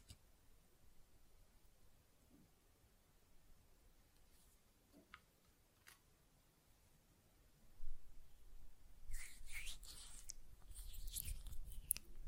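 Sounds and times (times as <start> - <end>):
gel lotion worked between hands: 9.1 - 12.1.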